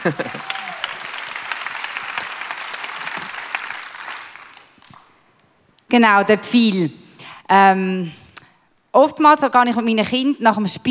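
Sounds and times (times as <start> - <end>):
speech: 0.0 - 0.4, 6.0 - 8.2, 9.0 - 10.8
laughter: 0.0 - 0.8
audience applause: 0.0 - 5.2.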